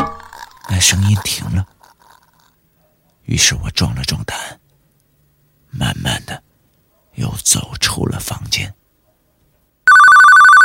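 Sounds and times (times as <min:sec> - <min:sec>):
speech: 0:00.8 - 0:01.7, 0:03.3 - 0:04.6, 0:05.7 - 0:06.4, 0:07.2 - 0:08.8
telephone ringing: 0:09.9 - 0:10.6.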